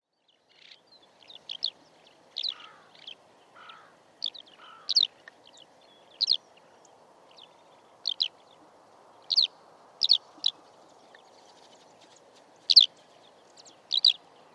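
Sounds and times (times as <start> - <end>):
Eurasian skylark giving brief bright chirping notes: 0.6 - 1.8, 2.4 - 5.1, 6.1 - 6.4, 7.4 - 8.4, 9.3 - 10.6, 12.7 - 12.9, 13.5 - 14.2.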